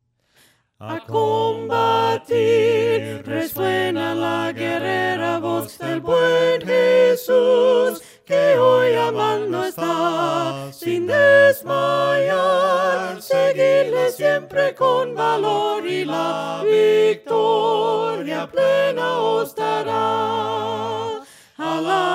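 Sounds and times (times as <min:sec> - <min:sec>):
voices singing hymns a cappella: 0:00.8 - 0:22.1.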